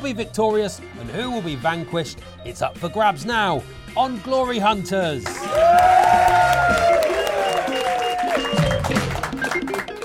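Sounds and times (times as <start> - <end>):
speech: 0.0 - 6.8
studio audience clapping: 5.2 - 10.0
shrill whoops: 5.5 - 8.8.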